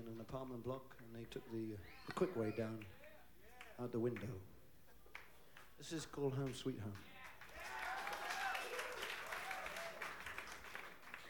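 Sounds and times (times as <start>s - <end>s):
speech: 0.0s - 3.0s, 3.8s - 4.6s, 5.8s - 7.2s
audience clapping: 0.9s - 4.4s, 5.0s - 11.2s
faint whoops and voices: 1.8s - 2.8s, 7.5s - 10.1s.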